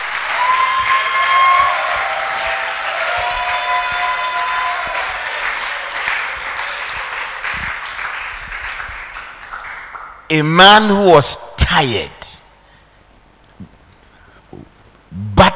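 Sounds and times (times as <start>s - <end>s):
audience shouting: 0.0s - 7.4s
audience clapping: 0.0s - 10.3s
speech: 10.3s - 12.2s.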